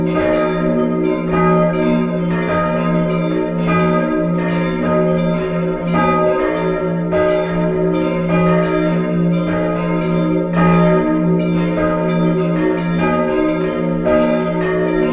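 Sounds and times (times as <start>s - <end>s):
full peal of church bells ringing: 0.0s - 15.1s.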